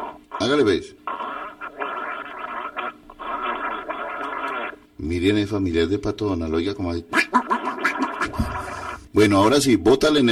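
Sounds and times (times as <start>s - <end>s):
speech: 0.4s - 1.0s, 5.0s - 7.2s, 9.2s - 10.3s
person gargling: 1.0s - 4.8s, 7.3s - 9.1s.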